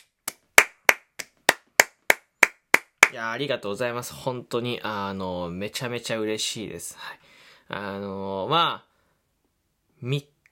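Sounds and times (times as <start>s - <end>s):
hand clapping: 0.0s - 3.2s
speech: 3.1s - 8.9s, 10.0s - 10.5s.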